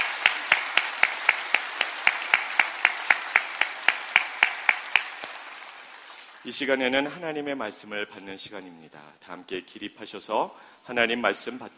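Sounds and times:
large crowd clapping in rhythm: 0.0s - 7.0s
scattered applause: 0.0s - 7.1s
speech: 6.4s - 11.7s.

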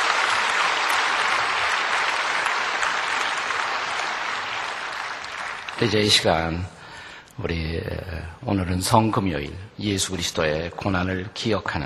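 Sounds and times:
audience applause: 0.0s - 6.6s
speech: 5.8s - 6.8s, 7.4s - 11.8s.

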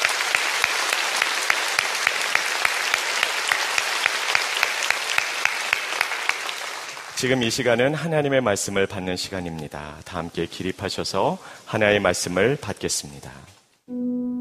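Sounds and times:
audience applause: 0.0s - 7.3s
speech: 7.2s - 13.6s.

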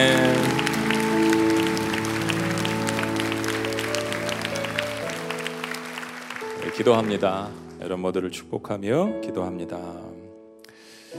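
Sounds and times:
audience applause: 0.0s - 8.0s
speech: 6.8s - 10.2s.

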